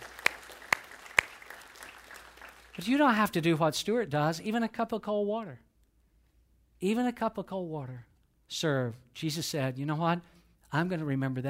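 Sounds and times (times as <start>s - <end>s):
sharp hand claps: 0.0s - 2.8s
speech: 2.8s - 5.7s, 6.8s - 11.4s.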